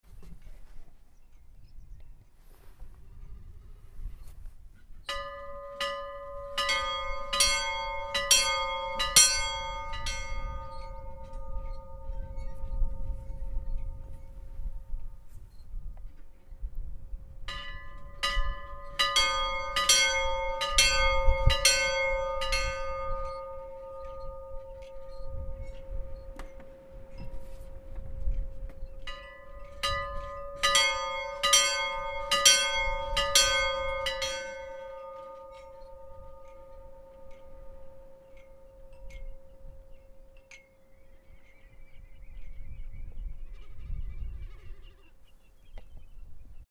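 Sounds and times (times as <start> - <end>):
Snóksdalskirkja church bells ringing: 5.1 - 15.3, 17.4 - 41.4.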